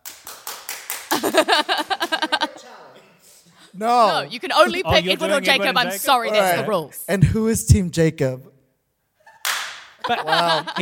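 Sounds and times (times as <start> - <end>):
live audience clapping in a steady rhythm for a vote: 0.0 - 2.4, 9.4 - 10.0
laughter: 1.1 - 2.8, 4.1 - 6.6, 10.0 - 10.8
speech: 1.2 - 2.9, 3.7 - 8.5, 10.1 - 10.8.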